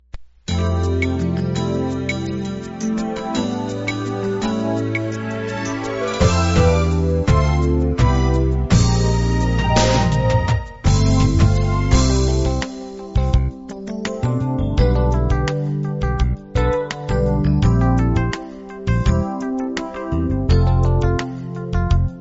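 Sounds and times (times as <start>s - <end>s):
instrumental music: 0.5s - 22.2s.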